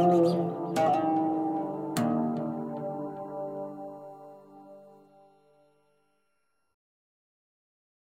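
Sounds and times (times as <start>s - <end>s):
oud: 0.0s - 3.9s.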